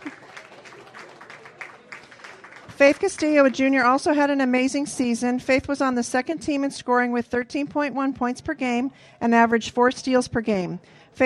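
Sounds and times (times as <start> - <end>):
faint audience applause at a high school basketball awards ceremony: 0.0 - 3.8
speech: 2.8 - 11.2.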